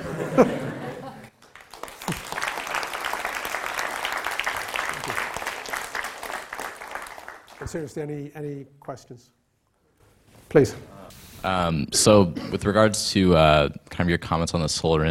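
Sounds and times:
laughter: 0.0 - 1.3
speech: 0.4 - 0.6, 7.7 - 9.4, 10.5 - 15.0
audience clapping: 1.2 - 8.1.

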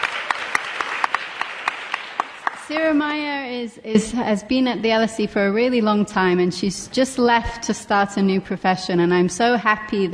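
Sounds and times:
audience applause at an LSE event: 0.0 - 2.9
speech: 2.7 - 10.1.

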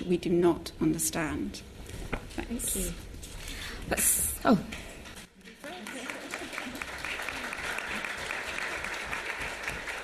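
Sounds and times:
speech: 0.1 - 1.7, 2.4 - 3.1, 3.9 - 4.9
audience applause: 5.4 - 10.0.

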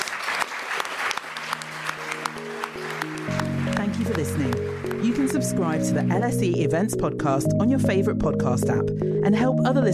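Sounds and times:
audience applause at an LSE event: 0.0 - 5.7
sustained musical tones: 1.4 - 9.9
speech: 5.4 - 9.9.

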